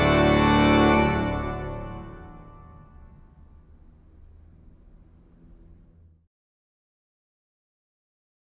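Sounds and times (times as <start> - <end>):
trumpet piece: 0.0 - 3.4.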